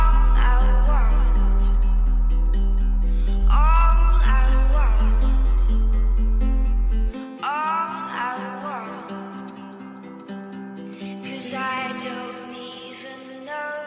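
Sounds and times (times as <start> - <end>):
bass boosted music: 0.0 - 7.2.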